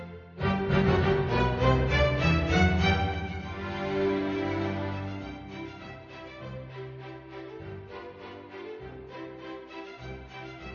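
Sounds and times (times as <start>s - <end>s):
polka music: 0.4s - 6.7s.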